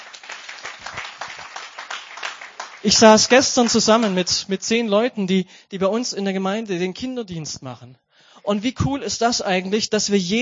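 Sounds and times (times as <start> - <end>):
scattered applause from a church congregation after a Sunday service: 0.0 - 4.4
speech: 2.8 - 10.3.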